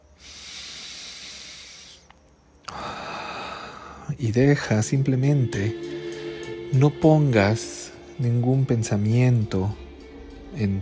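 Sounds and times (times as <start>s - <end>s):
deep breathing through the nose during a guided relaxation: 0.0s - 4.1s
speech: 4.2s - 6.0s, 6.7s - 9.8s, 10.5s - 10.8s.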